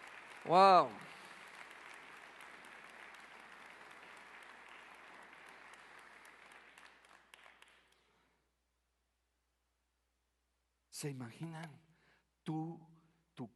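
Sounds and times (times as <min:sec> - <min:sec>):
audience applauding: 0:00.0 - 0:08.0
speech: 0:00.4 - 0:01.0, 0:11.0 - 0:11.9, 0:12.5 - 0:13.5.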